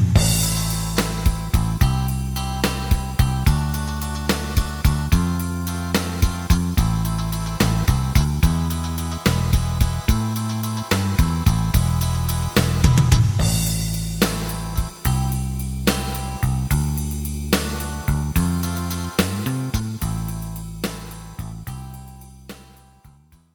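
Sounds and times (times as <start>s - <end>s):
lead melody: 0.2s - 23.3s.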